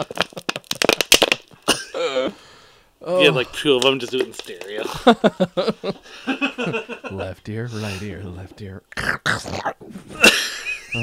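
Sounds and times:
speech: 0.0 - 0.2, 3.1 - 10.3
dry crinkly crackles: 0.0 - 1.7, 3.6 - 4.9
laughter: 4.7 - 8.0, 10.1 - 11.0.

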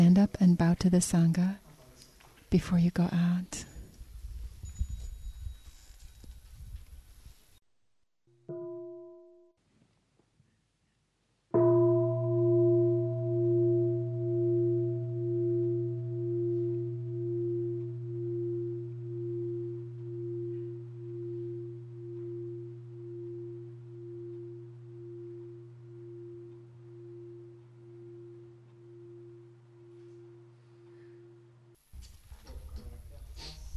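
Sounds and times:
speech: 0.0 - 1.6, 2.5 - 3.7
large bell ringing: 11.6 - 31.8.

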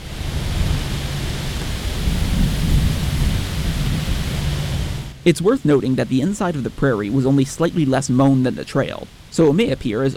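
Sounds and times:
low rumble of gusts: 0.0 - 10.1
trees rustling in the wind: 0.0 - 10.1
speech: 5.2 - 10.1.

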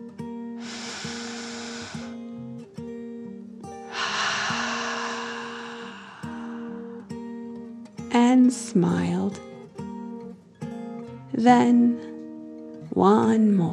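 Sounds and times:
deep calming dragon breath in and out: 0.6 - 2.4, 3.8 - 7.8
speech: 8.3 - 9.5, 11.4 - 12.1, 13.0 - 13.7.

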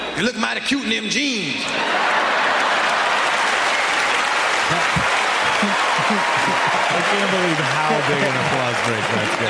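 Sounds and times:
speech: 0.2 - 2.3, 6.1 - 9.4
laughter: 1.7 - 3.6, 4.5 - 9.4
audience applause: 1.8 - 9.4.

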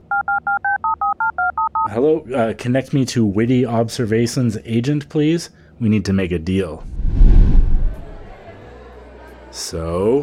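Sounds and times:
touch-tone beeps of a phone number being dialed: 0.1 - 1.9
speech: 1.9 - 7.0, 9.6 - 10.2.

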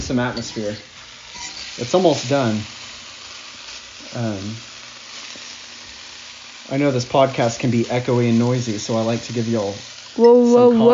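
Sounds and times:
chicken frying in a pan: 0.0 - 10.6
speech: 0.1 - 0.9, 1.8 - 2.8, 4.1 - 4.7, 6.7 - 10.9.

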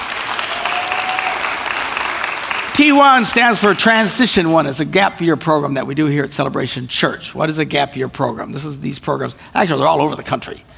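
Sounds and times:
audience applause at a church service welcoming students: 0.0 - 4.2
speech: 2.8 - 10.7.

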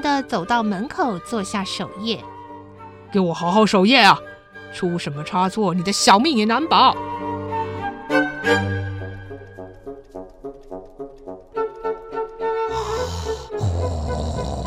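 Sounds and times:
speech: 0.0 - 2.3, 3.1 - 7.2, 8.1 - 8.8
man snoring: 12.7 - 14.6.

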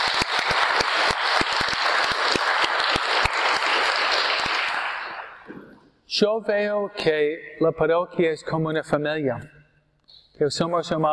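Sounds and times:
audience applause: 0.0 - 5.7
speech: 6.2 - 9.6, 10.4 - 11.1.

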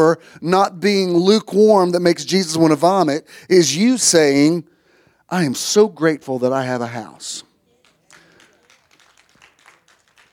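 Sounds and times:
speech: 0.0 - 4.7, 5.3 - 7.5
sparse audience applause: 7.8 - 10.3.

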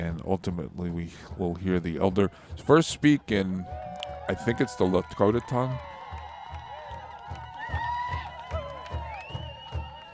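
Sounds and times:
speech: 0.0 - 5.9
crowd cheering: 2.0 - 10.1
whoops and shouts: 3.4 - 10.1.

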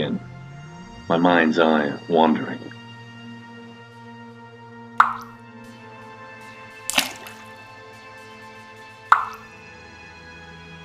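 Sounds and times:
speech: 1.1 - 2.8
water dripping: 5.0 - 5.4, 6.8 - 7.6, 9.1 - 9.5.

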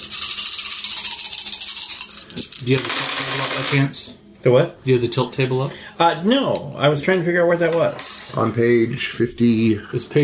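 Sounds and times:
dice being rolled: 0.1 - 3.8
speech: 2.6 - 10.2.

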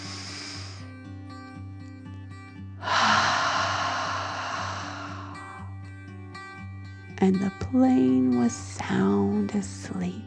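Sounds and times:
deep breath in and out: 0.0 - 0.9, 2.8 - 5.7
speech: 7.2 - 10.2.

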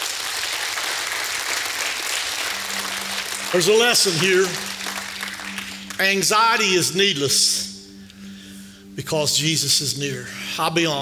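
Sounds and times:
audience clapping: 0.0 - 7.2
speech: 3.5 - 4.7, 6.0 - 7.7, 9.0 - 11.0.

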